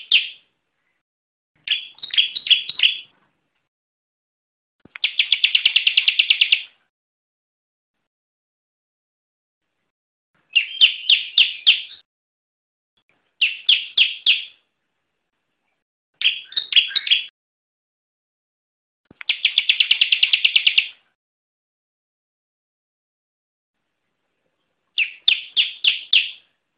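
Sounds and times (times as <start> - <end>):
bar-winged prinia song with rapid trill and ringing chirps: 1.6 - 3.1, 5.0 - 6.7, 10.5 - 12.0, 13.4 - 14.6, 16.2 - 17.3, 19.2 - 21.0, 25.0 - 26.5.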